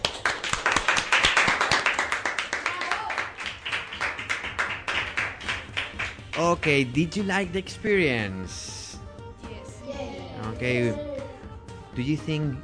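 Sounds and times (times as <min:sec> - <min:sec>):
applause: 0:00.0 - 0:06.7
speech: 0:06.4 - 0:08.7, 0:10.6 - 0:11.1, 0:12.0 - 0:12.6.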